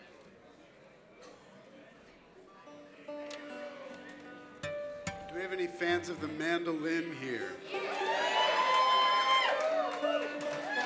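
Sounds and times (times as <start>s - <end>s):
speech: 5.4s - 8.0s
audience applauding: 7.8s - 10.8s.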